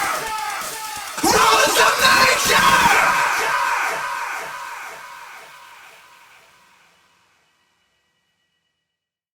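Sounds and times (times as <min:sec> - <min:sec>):
vocals: 0:00.0 - 0:07.0.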